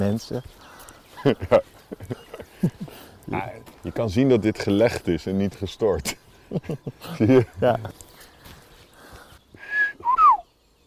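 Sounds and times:
speech: 0.0s - 8.1s
laughter: 1.2s - 3.4s, 6.0s - 8.0s
person whistling imitation of a blackbird song: 8.9s - 10.6s.

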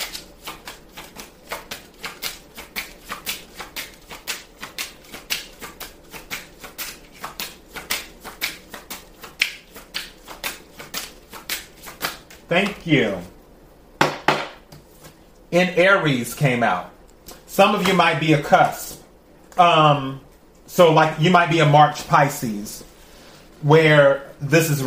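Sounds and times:
cards being shuffled for a Pisces reading: 0.0s - 12.9s
speech: 12.5s - 13.3s, 15.5s - 16.9s, 17.6s - 18.8s, 19.6s - 20.2s, 20.8s - 22.9s, 23.6s - 24.8s.

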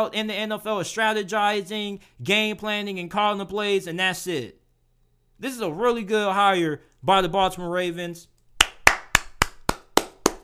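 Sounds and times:
speech: 0.0s - 4.6s, 5.4s - 8.3s
one person clapping hands: 8.6s - 10.4s.

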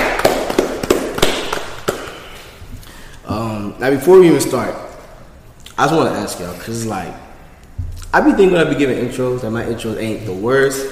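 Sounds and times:
hand clapping: 0.0s - 2.4s
speech: 3.8s - 4.9s, 5.8s - 7.2s, 8.1s - 10.9s.

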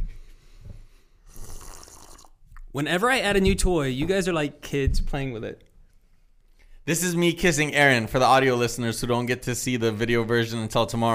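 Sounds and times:
person sipping water: 1.2s - 2.7s
speech: 2.8s - 5.7s, 6.9s - 11.1s.

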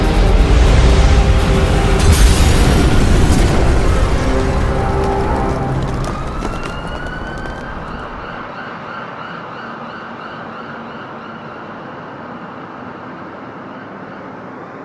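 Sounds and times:
monorail crashing into street, explosion: 0.4s - 8.4s
crunching debris: 1.8s - 8.4s.

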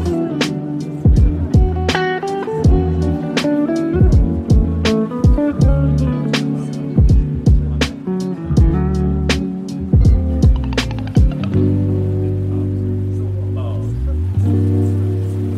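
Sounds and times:
relaxing coffee shop music: 0.0s - 15.5s
soft chatter: 0.0s - 15.5s.

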